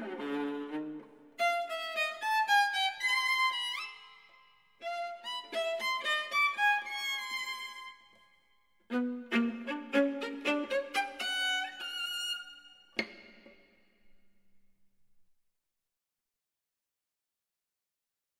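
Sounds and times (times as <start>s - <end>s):
viola playing a scherzo: 0.0s - 4.1s, 4.8s - 7.9s, 8.9s - 12.8s.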